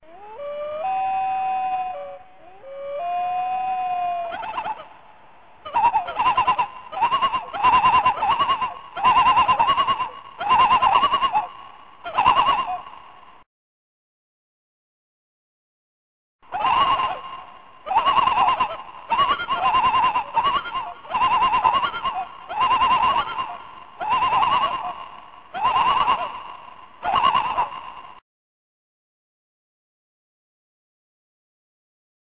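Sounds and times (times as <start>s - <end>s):
loons long calls: 0.0s - 13.3s, 16.4s - 28.2s.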